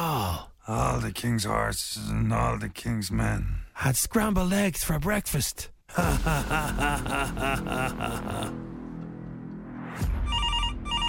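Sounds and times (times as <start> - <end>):
speech: 0.7 - 8.6
laughter: 6.0 - 8.6
telephone ringing with electronic trill: 10.2 - 11.0.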